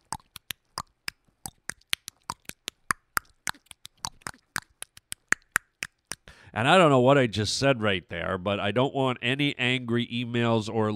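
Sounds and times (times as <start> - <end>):
voice imitating tongue clicking sounds: 0.0 - 6.3
speech: 6.5 - 10.9.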